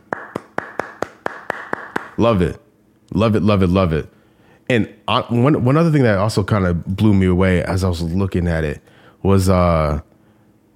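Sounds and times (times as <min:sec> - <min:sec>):
host clapping hands: 0:00.0 - 0:02.2
speech: 0:02.2 - 0:10.1.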